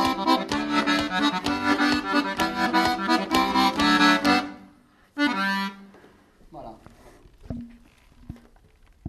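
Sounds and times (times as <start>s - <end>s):
polka accompaniment: 0.0s - 6.0s.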